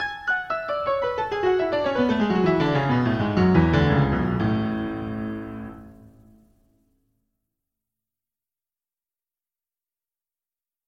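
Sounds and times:
piano practice: 0.0s - 6.5s.

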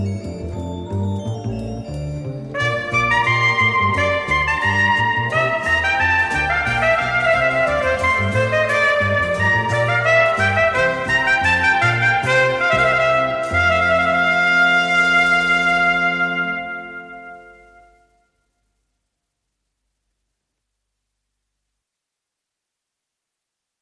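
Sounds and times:
orchestral gavotte in D major: 0.0s - 18.0s.

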